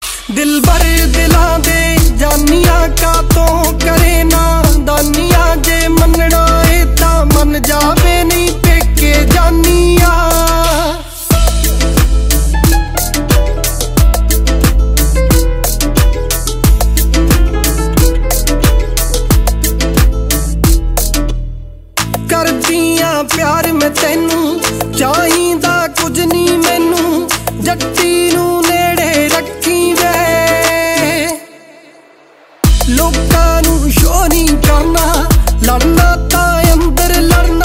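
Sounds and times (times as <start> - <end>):
new Punjabi songs: 0.0 - 37.6.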